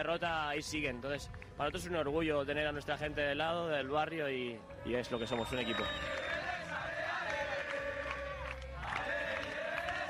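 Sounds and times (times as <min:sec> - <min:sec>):
speech: 0:00.0 - 0:06.4
Basketball fans shouting and cheering: 0:04.7 - 0:10.0.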